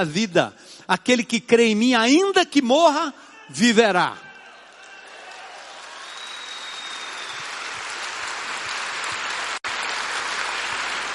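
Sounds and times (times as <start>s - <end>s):
speech: 0.0s - 4.2s
crowd applauding: 4.4s - 11.1s.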